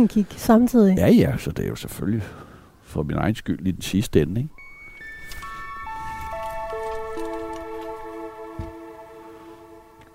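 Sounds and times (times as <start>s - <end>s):
speech: 0.0s - 4.6s
bell ringing from a bell tower: 4.6s - 10.0s.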